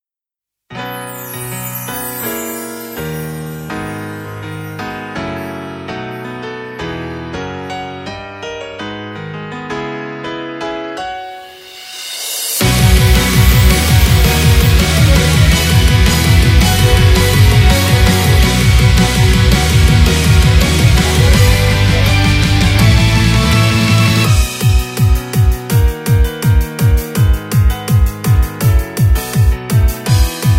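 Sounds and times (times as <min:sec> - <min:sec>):
off vocal instrumental music: 0:00.7 - 0:30.5.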